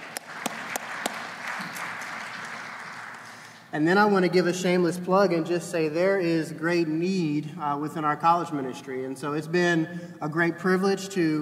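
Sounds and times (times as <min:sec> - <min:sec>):
audience applause: 0:00.0 - 0:03.6
speech: 0:03.7 - 0:11.4.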